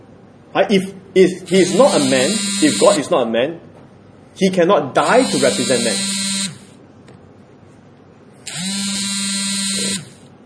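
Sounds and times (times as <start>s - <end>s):
speech: 0.5s - 3.7s, 4.4s - 6.2s
alarm going off: 1.5s - 3.1s, 5.0s - 6.7s, 8.5s - 10.2s.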